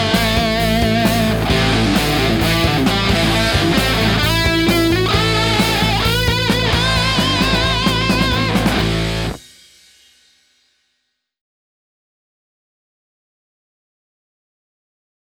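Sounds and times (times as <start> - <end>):
rock guitar: 0.0 - 9.6.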